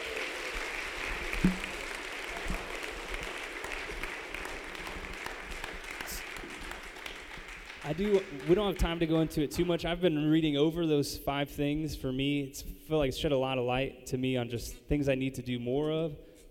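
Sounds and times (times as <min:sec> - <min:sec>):
applause: 0:00.0 - 0:09.4
speech: 0:01.4 - 0:01.6, 0:07.9 - 0:16.3.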